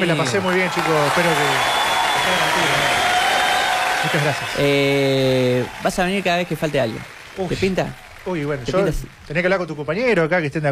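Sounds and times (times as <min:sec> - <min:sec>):
speech: 0:00.0 - 0:03.1, 0:04.0 - 0:10.7
audience applause: 0:00.0 - 0:09.9.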